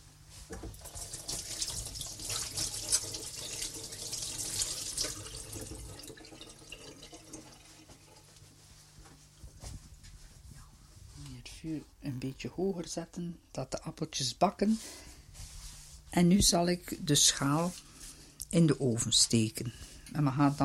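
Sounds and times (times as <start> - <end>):
running tap water rinsing hands: 0.7 - 8.0
speech: 11.6 - 15.0, 16.2 - 17.8, 18.5 - 20.6.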